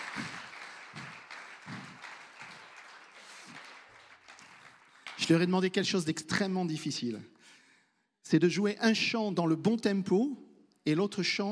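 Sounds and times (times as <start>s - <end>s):
audience applauding musicians: 0.0s - 5.5s
speech: 5.3s - 7.4s, 8.3s - 11.5s.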